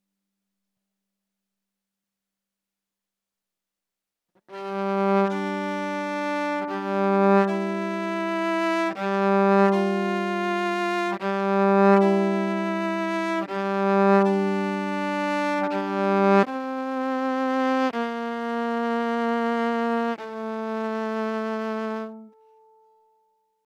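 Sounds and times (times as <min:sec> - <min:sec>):
violin: 0:04.5 - 0:23.2.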